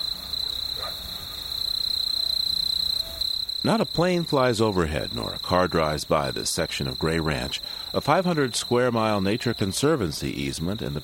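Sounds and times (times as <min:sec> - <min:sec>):
insects buzzing in the desert at dawn: 0:00.0 - 0:11.0
speech: 0:03.6 - 0:11.0.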